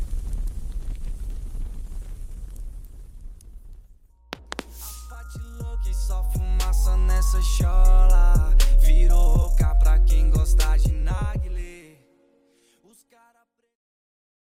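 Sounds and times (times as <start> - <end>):
deep bass: 4.3 - 11.7.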